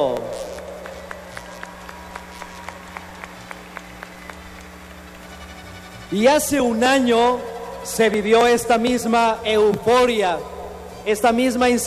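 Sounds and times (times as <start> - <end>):
speech: 0.0 - 0.5, 6.1 - 11.8
audience applause: 0.2 - 9.2.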